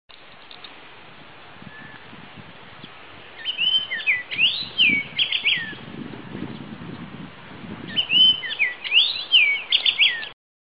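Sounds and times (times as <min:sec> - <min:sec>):
Chinese grosbeak whistled chirps: 0:01.7 - 0:02.0, 0:03.4 - 0:05.8, 0:07.9 - 0:10.4.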